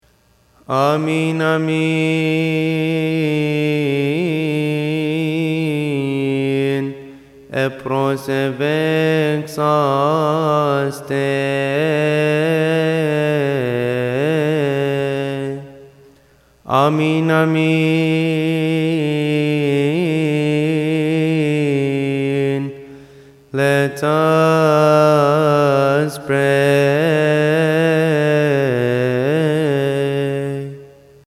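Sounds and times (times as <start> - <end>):
person praying: 0.6 - 31.2.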